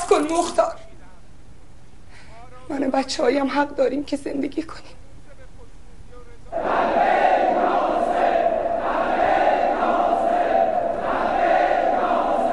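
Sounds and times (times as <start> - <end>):
speech: 0.2 - 0.8, 2.7 - 5.0
large crowd chanting a battle cry in unison: 6.5 - 12.5.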